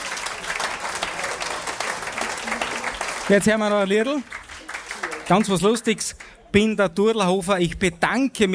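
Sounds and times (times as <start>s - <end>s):
audience applause: 0.0s - 6.3s
speech: 3.3s - 4.4s, 5.3s - 8.5s.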